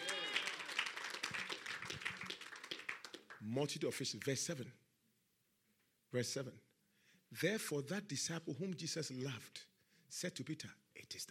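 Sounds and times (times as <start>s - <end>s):
audience clapping: 0.0s - 4.3s
speech: 3.4s - 4.8s, 6.1s - 6.7s, 7.3s - 11.3s.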